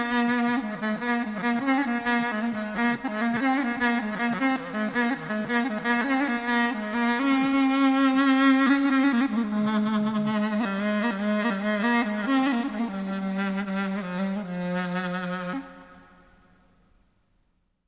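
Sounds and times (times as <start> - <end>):
solo duduk: 0.0 - 16.6.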